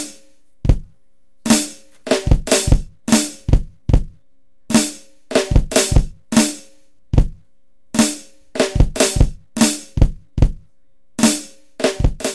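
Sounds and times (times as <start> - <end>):
drum scratch: 1.5 - 6.5, 8.6 - 10.6, 11.2 - 12.3.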